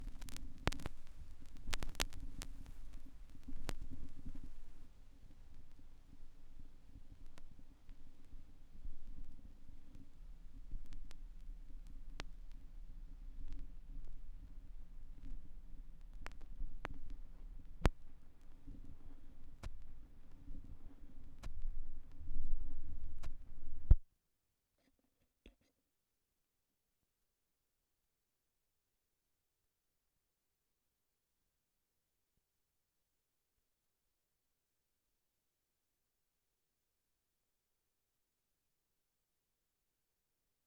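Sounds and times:
vinyl record noise: 0:00.0 - 0:24.0.

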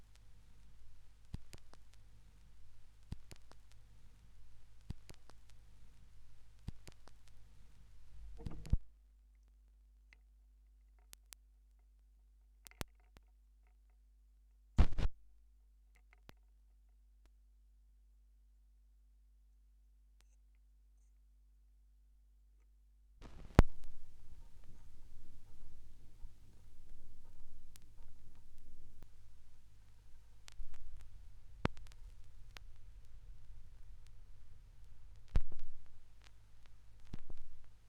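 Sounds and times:
vinyl record noise: 0:00.0 - 0:08.9, 0:14.8 - 0:15.2, 0:23.2 - 0:37.8.

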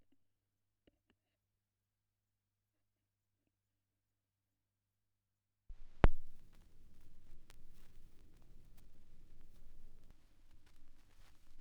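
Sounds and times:
vinyl record crackle: 0:05.9 - 0:11.5.

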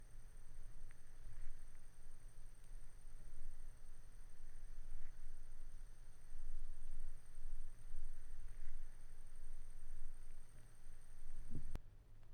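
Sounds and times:
vinyl record noise: 0:00.1 - 0:11.8.

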